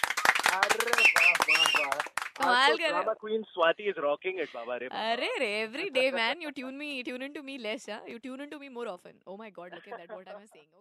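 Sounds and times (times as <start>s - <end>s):
hands clapping: 0.0s - 3.0s
speech: 0.8s - 10.7s.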